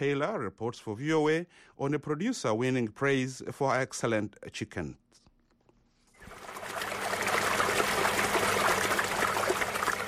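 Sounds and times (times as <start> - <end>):
speech: 0.0 - 5.1
fresh spring water trickling and splashing: 6.2 - 10.0.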